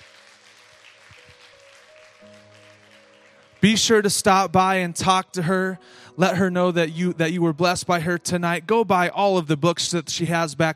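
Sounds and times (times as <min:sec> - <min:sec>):
audience applause: 0:00.0 - 0:04.3
speech: 0:03.6 - 0:10.7.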